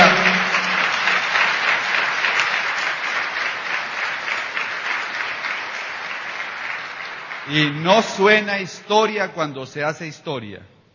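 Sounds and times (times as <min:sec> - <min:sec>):
audience applause: 0:00.0 - 0:08.4
speech: 0:07.5 - 0:10.7.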